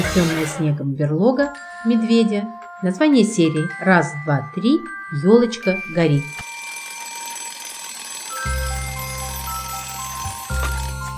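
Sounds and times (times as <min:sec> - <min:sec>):
speech: 0:00.2 - 0:06.5
alarm clock ringing: 0:01.4 - 0:11.1.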